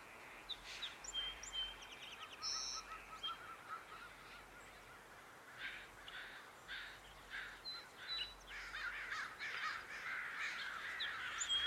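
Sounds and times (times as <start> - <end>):
birds chirping along footpaths at Dharma Rain Zen Center: 0.0 - 11.6
soft steady hiss: 0.0 - 11.6
harsh caw-like bird calls: 2.9 - 11.6.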